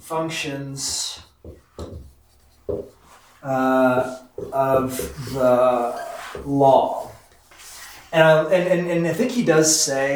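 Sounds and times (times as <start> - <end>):
speech: 0.1 - 1.9, 2.7 - 7.0, 8.1 - 10.1
scratchy strokes of writing out notes by hand: 0.8 - 8.1.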